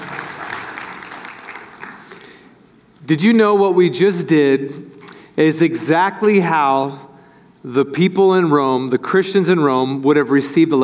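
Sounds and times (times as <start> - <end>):
church congregation clapping: 0.0 - 2.5
speech: 3.1 - 10.8.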